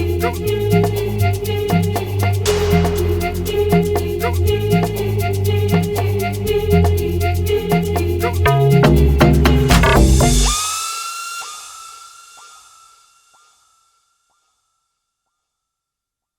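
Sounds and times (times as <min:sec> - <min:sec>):
afrobeats remix: 0:00.0 - 0:11.6.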